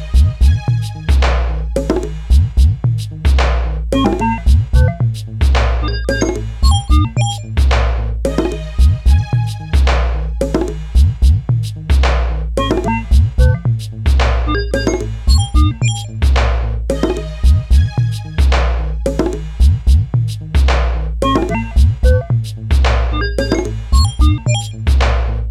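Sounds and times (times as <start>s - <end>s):
string synth: 0.0s - 2.3s, 4.0s - 5.0s, 5.8s - 7.6s, 8.2s - 10.7s, 12.6s - 13.7s, 14.5s - 16.2s, 16.9s - 19.4s, 21.2s - 22.2s, 23.1s - 24.8s
glitchy hip hop electronica beat loop: 0.0s - 25.4s.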